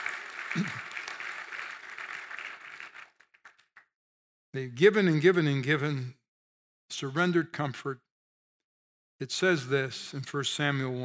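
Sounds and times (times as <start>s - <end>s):
audience applauding: 0.0s - 3.9s
speech: 0.6s - 0.9s, 4.5s - 6.2s, 6.9s - 8.0s, 9.2s - 11.0s.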